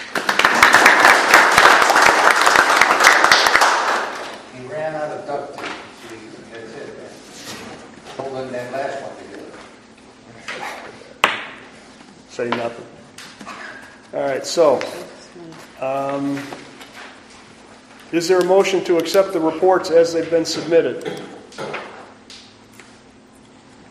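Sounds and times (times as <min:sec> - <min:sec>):
round of applause: 0:00.0 - 0:04.4
speech: 0:14.4 - 0:15.0, 0:15.8 - 0:16.6, 0:18.1 - 0:21.4.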